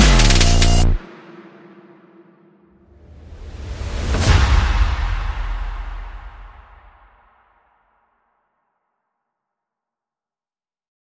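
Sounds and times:
bass: 0.0s - 1.0s
sound effects: 0.0s - 1.1s
percussion: 0.0s - 7.7s.

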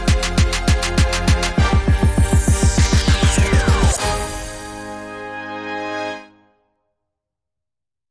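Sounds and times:
mystical trap beat: 0.0s - 4.5s.

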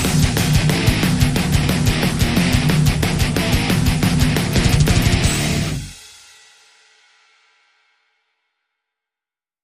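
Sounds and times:
thrash metal music: 0.0s - 6.3s.

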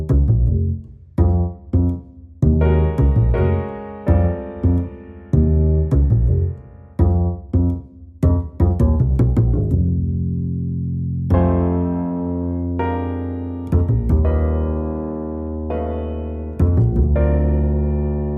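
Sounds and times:
bass: 0.0s - 18.3s
piano: 0.0s - 18.3s.

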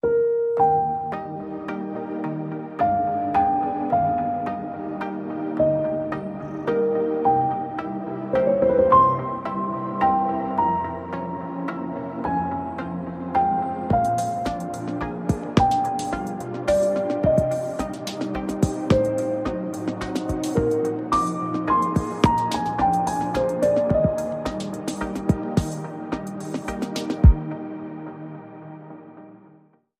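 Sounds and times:
downtempo remix music: 0.0s - 29.4s.

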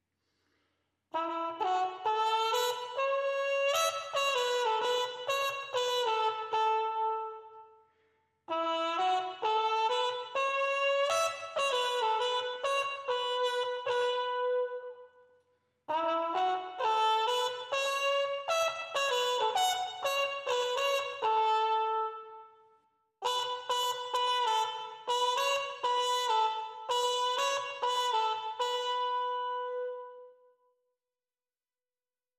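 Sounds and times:
trumpets: 1.2s - 7.7s, 8.5s - 15.0s, 15.9s - 22.6s, 23.2s - 30.2s.

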